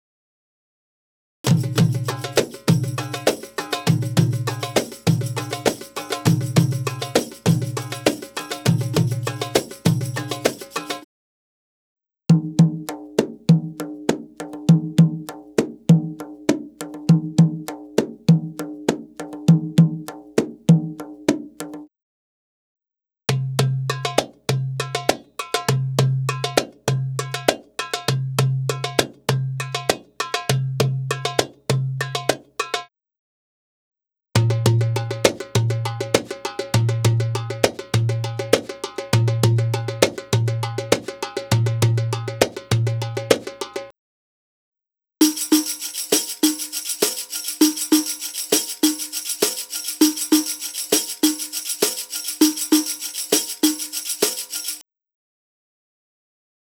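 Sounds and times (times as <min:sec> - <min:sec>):
Arabic rhythm percussion: 0:01.5 - 0:11.1, 0:12.3 - 0:21.9, 0:23.3 - 0:32.9, 0:34.4 - 0:43.9, 0:45.2 - 0:54.8.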